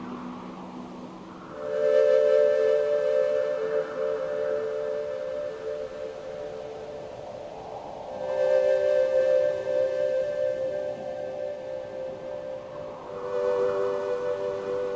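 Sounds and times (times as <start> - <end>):
ambient soundtrack music: 0.0 - 14.9.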